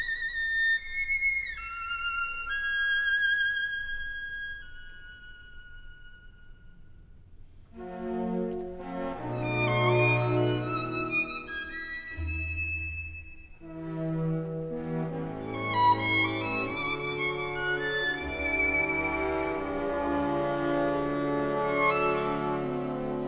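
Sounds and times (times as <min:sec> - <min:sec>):
violin: 0:00.0 - 0:23.2
orchestral bassoon: 0:07.7 - 0:12.6, 0:13.6 - 0:23.2
orchestra playing: 0:07.8 - 0:23.2.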